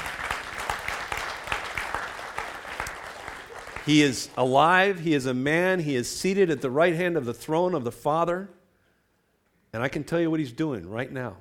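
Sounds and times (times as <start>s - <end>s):
audience clapping: 0.0s - 5.0s
speech: 3.9s - 8.6s, 9.8s - 11.3s.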